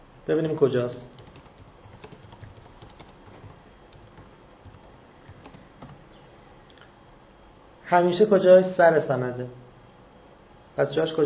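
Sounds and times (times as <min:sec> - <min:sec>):
speech: 0:00.2 - 0:01.2, 0:07.9 - 0:09.6, 0:10.8 - 0:11.2
computer keyboard typing a name into a search: 0:01.2 - 0:06.1.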